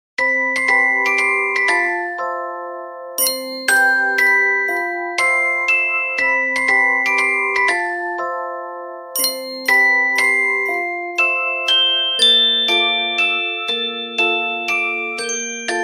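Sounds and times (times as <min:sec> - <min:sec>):
peaceful dreaming ringtone: 0:00.2 - 0:15.8.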